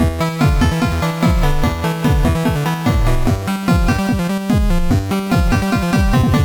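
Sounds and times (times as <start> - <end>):
synth song: 0.0 - 6.4.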